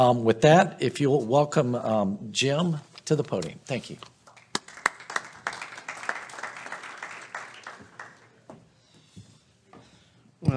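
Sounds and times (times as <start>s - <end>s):
speech: 0.0s - 4.2s
lukewarm audience applause at a law event: 4.2s - 8.4s.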